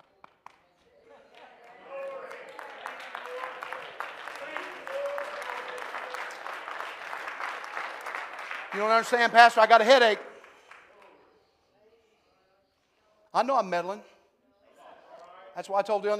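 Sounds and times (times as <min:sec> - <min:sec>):
congregation clapping at a Sunday evening church service: 0:00.0 - 0:11.2
speech: 0:08.8 - 0:10.2, 0:13.4 - 0:14.1, 0:15.6 - 0:16.1.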